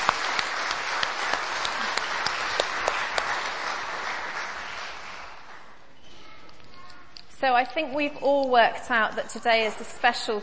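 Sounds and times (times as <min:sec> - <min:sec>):
audience applause: 0:00.0 - 0:05.8
speech: 0:07.4 - 0:10.4.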